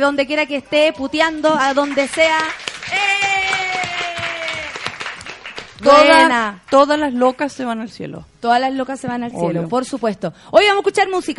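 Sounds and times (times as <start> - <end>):
speech: 0.0 - 3.2, 5.8 - 11.3
small group applauding: 1.4 - 6.9.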